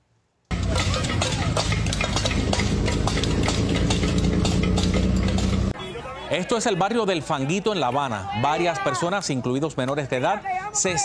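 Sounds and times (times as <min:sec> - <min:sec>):
pots banged in street protest: 0:00.5 - 0:05.7
speech: 0:06.4 - 0:11.0.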